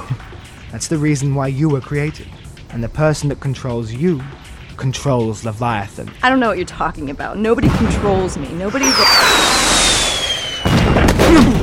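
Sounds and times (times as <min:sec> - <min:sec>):
speech: 0:00.7 - 0:09.6
missile fired: 0:08.7 - 0:11.3
explosion: 0:08.8 - 0:11.6.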